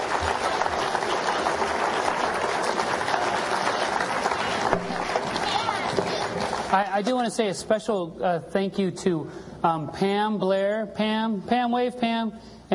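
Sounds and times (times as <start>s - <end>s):
audience applauding: 0.0s - 7.1s
speech: 6.7s - 12.7s.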